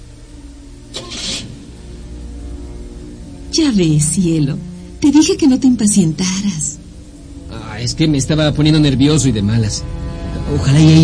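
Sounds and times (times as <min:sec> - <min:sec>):
car engine rumbling as the car drives off on dark streets in Jalapa: 0:00.0 - 0:11.0
parked car's engine cranking: 0:00.9 - 0:01.9
speech: 0:03.5 - 0:06.8, 0:07.8 - 0:11.0.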